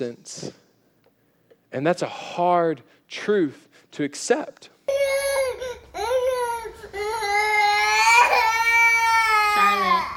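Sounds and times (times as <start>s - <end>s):
speech: 0.0s - 0.6s, 1.7s - 4.8s
toddler crying: 4.9s - 10.1s.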